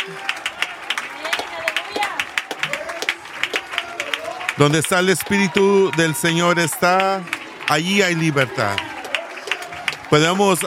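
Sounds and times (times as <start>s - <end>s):
audience clapping: 0.0s - 10.6s
speech: 0.1s - 0.3s, 4.6s - 9.0s, 10.1s - 10.6s.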